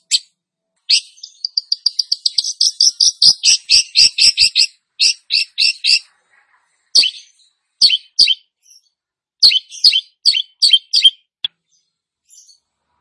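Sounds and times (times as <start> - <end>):
long-tailed shrike singing harsh chips and sharp varied notes: 0.9 - 6.0, 7.0 - 8.5, 9.4 - 11.2.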